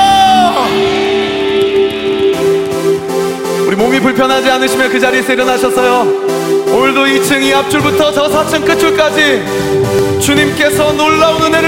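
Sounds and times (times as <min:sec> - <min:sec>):
audience cheering and whooping: 0:00.0 - 0:02.6
audience clapping: 0:00.7 - 0:03.4
speech: 0:03.8 - 0:11.6.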